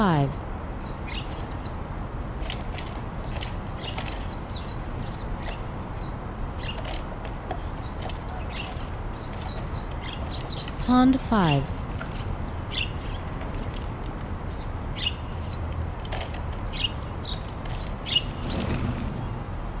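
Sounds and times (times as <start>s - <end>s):
speech: 0.0s - 0.5s, 10.9s - 11.8s
house sparrows chirping: 0.0s - 19.7s
low background hum: 0.0s - 19.7s.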